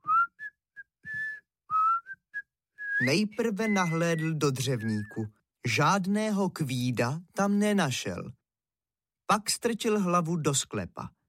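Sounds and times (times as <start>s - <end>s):
man whistling a tune: 0.0s - 5.4s
speech: 3.0s - 8.4s, 9.3s - 11.2s.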